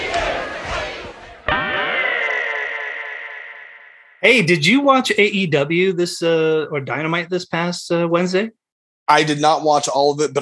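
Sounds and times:
big wrestling crowd roaring and cheering: 0:00.0 - 0:03.8
speech: 0:04.2 - 0:10.4.

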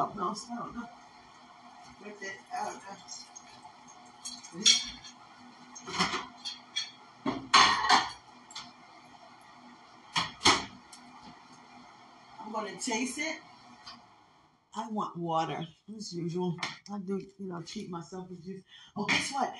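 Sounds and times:
speech: 0:00.0 - 0:01.0, 0:02.0 - 0:03.3, 0:04.5 - 0:05.2, 0:05.8 - 0:06.2, 0:12.6 - 0:13.5, 0:14.8 - 0:19.5
drying a plate: 0:00.0 - 0:11.8
dishes clattering: 0:04.2 - 0:08.7.

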